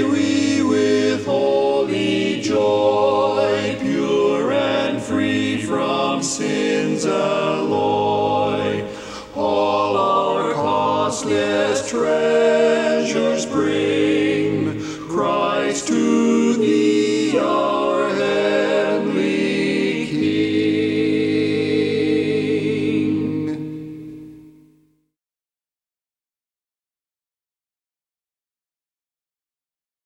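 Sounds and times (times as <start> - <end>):
baritone singing a cappella: 0.0 - 23.8.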